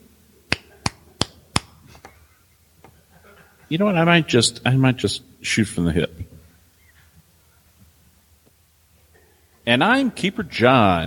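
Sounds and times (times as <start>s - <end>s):
hand clap for audio sync: 0.5s - 2.1s
speech: 3.7s - 6.3s, 9.7s - 11.0s.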